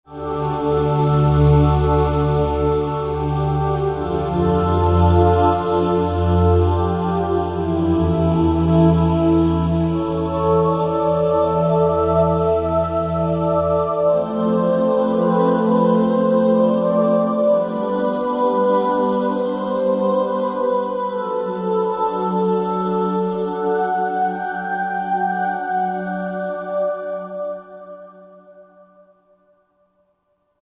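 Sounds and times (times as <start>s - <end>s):
Roland SR-JV80-16 orchestral synth voices: 0.1s - 29.1s.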